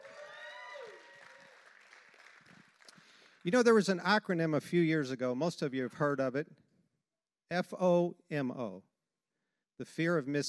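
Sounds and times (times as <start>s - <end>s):
whoops and cheering voices: 0.0s - 1.8s
audience applause: 0.0s - 3.4s
speech: 3.4s - 6.6s, 7.5s - 8.9s, 9.8s - 10.4s.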